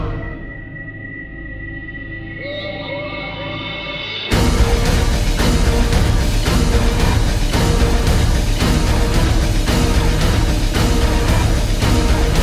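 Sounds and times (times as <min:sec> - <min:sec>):
scary instrumental music: 0:00.0 - 0:12.4.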